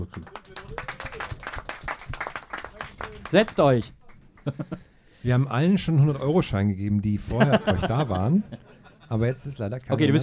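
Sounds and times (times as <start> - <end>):
speech: 0.0 - 0.8, 3.3 - 10.2
audience clapping for latecomers at a German comedy show: 0.0 - 4.7
laughter: 4.4 - 4.9, 7.2 - 9.6.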